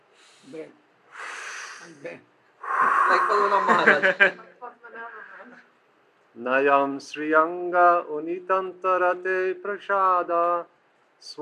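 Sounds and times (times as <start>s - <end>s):
speech: 0.4s - 0.9s, 1.8s - 5.7s, 6.3s - 11.3s
breath drawn between chanted Sanskrit verses: 1.1s - 2.0s, 2.6s - 3.5s
laughter: 3.2s - 4.4s.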